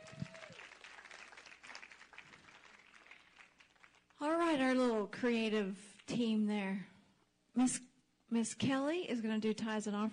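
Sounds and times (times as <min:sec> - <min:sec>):
church congregation applause: 0:00.0 - 0:04.1
speech: 0:04.5 - 0:07.0, 0:07.6 - 0:10.1.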